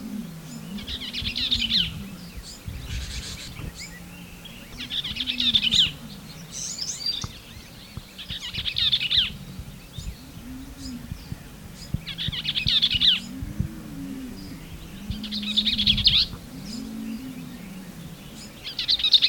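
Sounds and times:
Bell's vireo singing: 0.0s - 19.2s.

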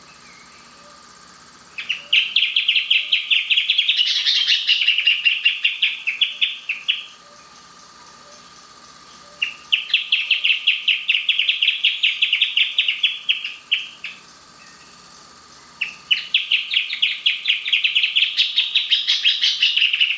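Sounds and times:
Band-tailed hornero giving fast shrill rattling calls: 1.8s - 20.1s.

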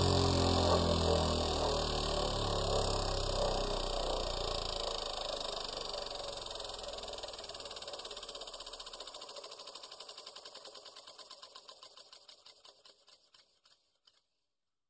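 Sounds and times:
polishing machine: 0.0s - 7.0s.

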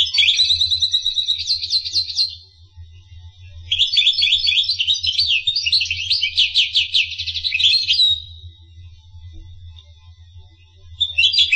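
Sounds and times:
finch twittering song: 0.0s - 2.4s, 3.7s - 8.4s, 11.0s - 11.5s
faint low hum: 0.0s - 11.5s.

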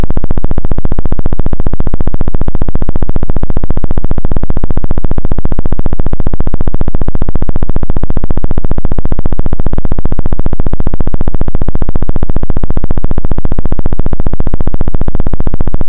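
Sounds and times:
brain wave tones: 0.0s - 15.8s.

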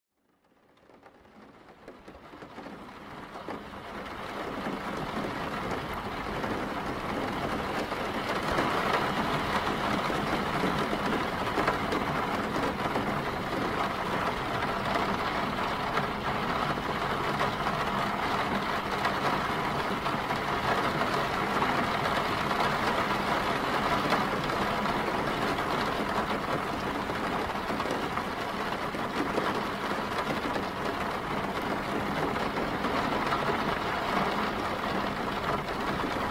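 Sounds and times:
rain heard inside a car: 0.1s - 36.3s.

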